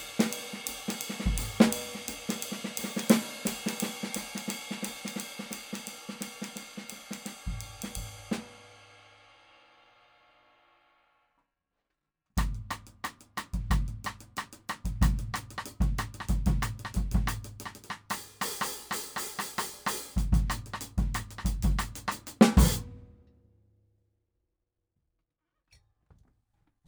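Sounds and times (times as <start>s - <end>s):
Gretsch Drop G snare drum: 0.0s - 8.8s, 12.4s - 23.2s.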